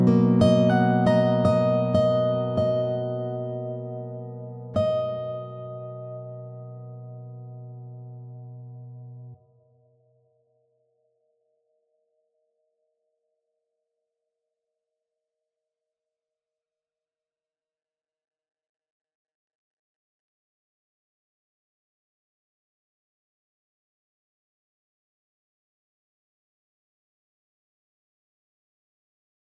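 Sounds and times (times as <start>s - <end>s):
classical guitar: 0.0s - 9.5s.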